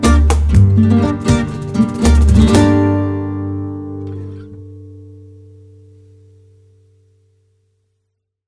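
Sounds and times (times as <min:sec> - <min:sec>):
comic rumba music: 0:00.0 - 0:04.5.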